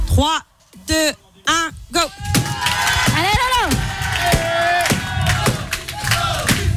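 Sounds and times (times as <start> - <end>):
speech: 0.2 - 2.2
crowd shouting encouragement during a Guinness world record attempt: 2.1 - 6.7.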